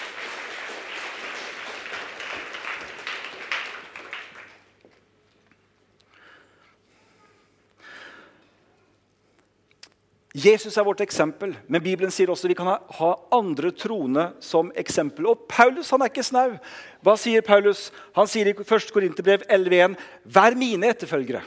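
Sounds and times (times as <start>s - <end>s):
audience applause: 0.0s - 4.8s
speech: 10.4s - 21.4s.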